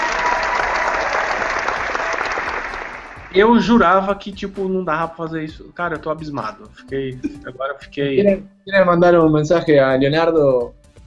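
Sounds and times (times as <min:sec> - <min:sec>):
applause: 0:00.0 - 0:03.5
speech: 0:03.3 - 0:10.8.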